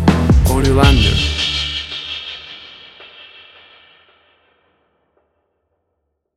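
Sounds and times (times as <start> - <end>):
orchestral hip hop stinger: 0.1 - 4.3.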